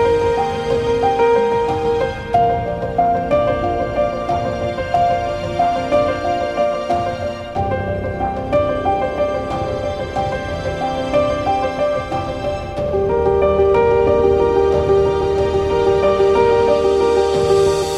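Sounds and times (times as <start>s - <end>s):
ambient piano: 0.0s - 17.9s.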